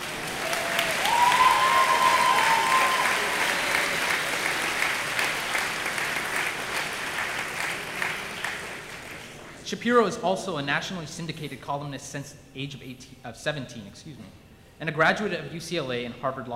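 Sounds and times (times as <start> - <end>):
audience applause: 0.0 - 9.4
speech: 9.7 - 16.5.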